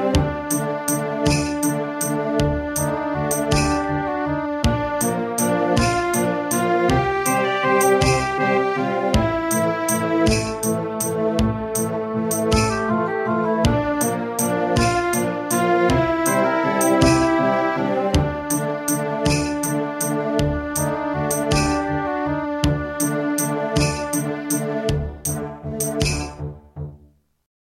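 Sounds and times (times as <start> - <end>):
IBM Aptiva SW1C desktop computer: 0.1 - 4.0, 4.7 - 26.4.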